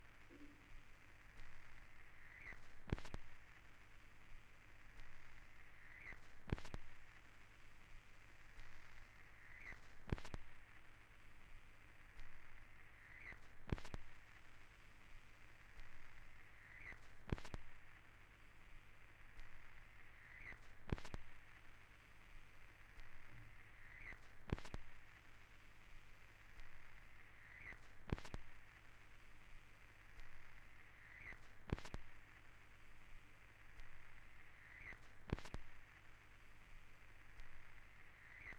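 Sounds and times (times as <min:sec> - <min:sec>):
vinyl record noise: 0:00.0 - 0:38.5.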